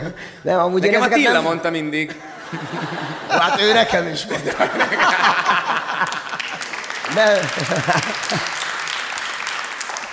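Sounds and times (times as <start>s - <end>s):
speech: 0.0s - 6.2s, 7.1s - 8.6s
laughter: 2.1s - 9.7s
applause: 5.4s - 10.1s.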